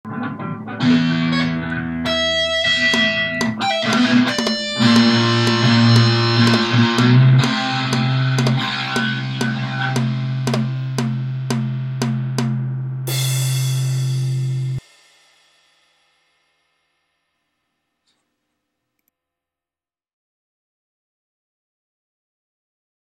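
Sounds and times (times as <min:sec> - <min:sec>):
intro music: 0:00.8 - 0:15.1.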